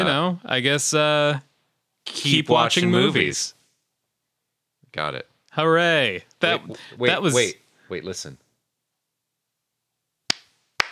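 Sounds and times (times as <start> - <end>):
speech: 0.0 - 3.6, 4.9 - 8.4
hand claps: 10.3 - 10.8.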